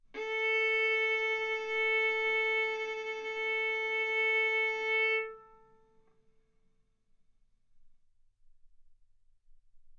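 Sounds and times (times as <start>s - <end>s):
violin bowed arco notes: 0.0s - 6.3s.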